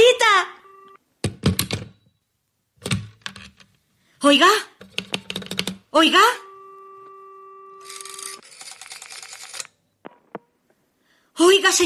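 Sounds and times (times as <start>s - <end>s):
two-note telephone line tone in a stage production of Cocteau's The Human Voice: 0.4s - 1.0s, 6.1s - 8.4s
speech: 4.2s - 5.1s, 6.0s - 6.5s, 11.4s - 11.8s.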